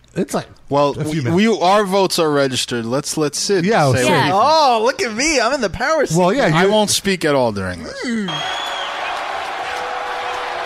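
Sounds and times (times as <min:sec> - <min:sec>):
speech: 0:00.2 - 0:08.6
crowd booing: 0:08.2 - 0:10.6.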